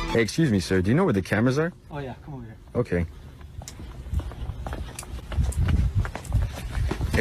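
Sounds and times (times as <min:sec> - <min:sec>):
speech: 0:00.1 - 0:03.2
footsteps of several people running fast: 0:02.6 - 0:07.1.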